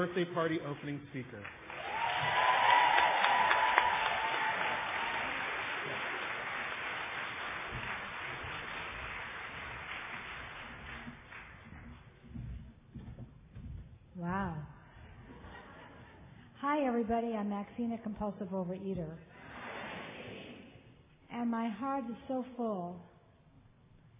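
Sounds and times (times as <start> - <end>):
speech: 0.0 - 2.4, 16.9 - 19.4, 21.4 - 23.1
audience applause: 1.2 - 12.0.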